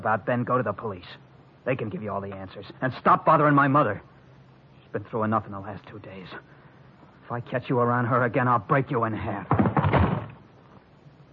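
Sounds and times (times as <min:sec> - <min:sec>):
speech: 0:00.0 - 0:04.1, 0:04.9 - 0:06.6, 0:07.3 - 0:10.0
door slammed shut: 0:09.5 - 0:10.4.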